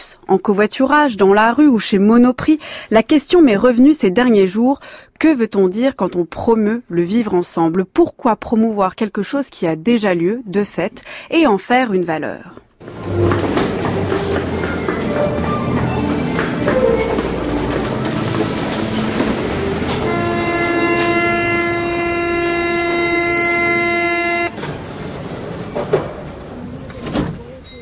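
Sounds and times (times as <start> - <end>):
speech: 0.3 - 13.6
metro train rumbling along the rails: 12.8 - 27.7.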